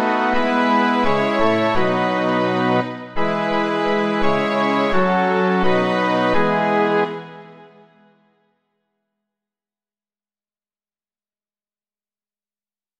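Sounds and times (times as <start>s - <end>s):
organ: 0.0s - 7.3s
string orchestra: 0.0s - 7.8s.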